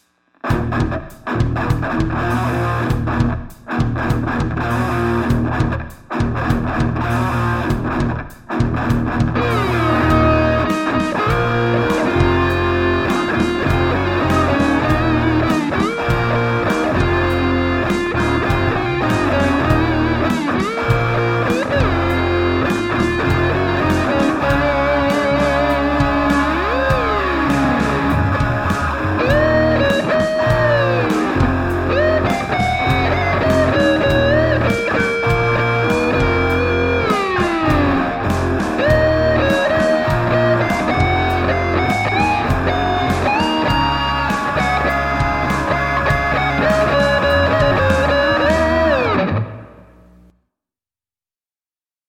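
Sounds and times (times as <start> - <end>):
fretless bass: 0.4 - 50.3.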